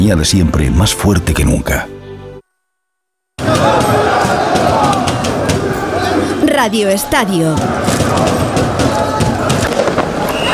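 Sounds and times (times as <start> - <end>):
speech: 0.0 - 1.9, 6.6 - 8.5
celebrating street crowd shouting on Paris night: 3.4 - 10.5
firecracker pops and bangs: 9.5 - 10.4.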